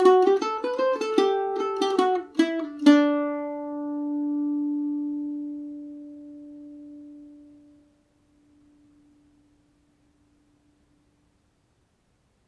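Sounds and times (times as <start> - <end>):
Irish mandolin in D mixolydian: 0.0 - 9.6.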